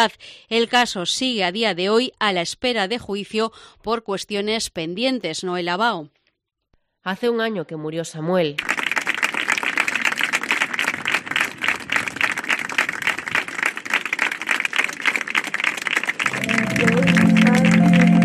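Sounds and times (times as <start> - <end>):
speech: 0.0 - 6.2, 7.0 - 8.8
sustained applause at a vigil on the Paseo Marítimo: 8.6 - 18.2.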